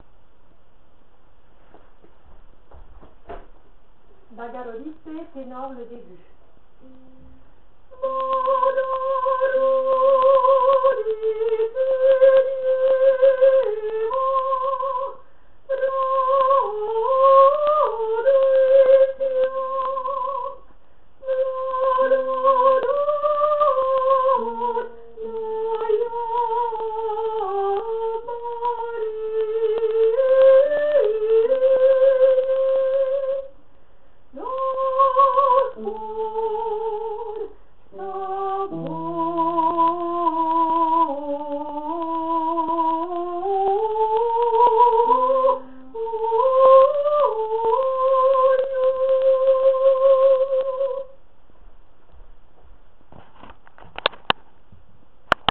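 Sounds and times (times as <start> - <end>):
tenor singing: 6.8 - 20.6, 21.2 - 33.6, 34.3 - 51.2.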